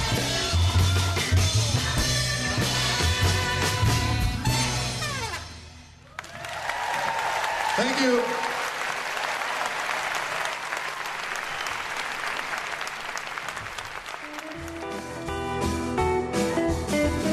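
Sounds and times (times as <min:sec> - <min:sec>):
music: 0:00.0 - 0:06.1, 0:14.0 - 0:17.3
audience applause after a song: 0:06.0 - 0:15.4
speech: 0:07.9 - 0:08.4.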